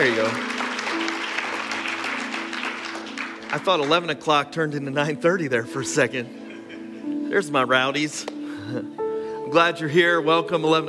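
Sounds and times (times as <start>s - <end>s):
speech: 0.0s - 0.6s, 3.5s - 6.4s, 7.3s - 10.8s
audience applause: 0.0s - 4.2s.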